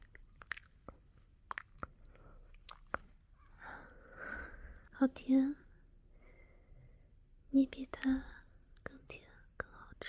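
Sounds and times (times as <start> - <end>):
wet mouth clicks and smacks licking cream off a nose: 0.0 - 3.1
speech: 5.0 - 5.6, 7.6 - 8.3.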